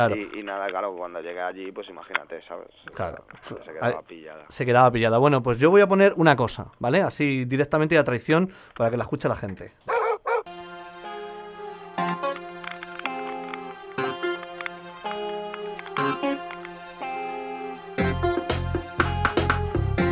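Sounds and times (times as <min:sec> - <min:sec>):
speech: 0:00.0 - 0:09.9
sharp repeated dog barks: 0:09.9 - 0:10.5
instrumental dancehall riddim with sustained melodic tones: 0:10.4 - 0:20.1.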